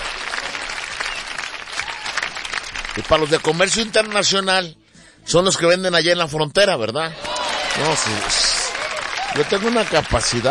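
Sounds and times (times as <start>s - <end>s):
audience applause for workers of a local food market: 0.0s - 4.3s, 7.2s - 10.5s
speech: 3.0s - 8.6s, 9.3s - 10.5s.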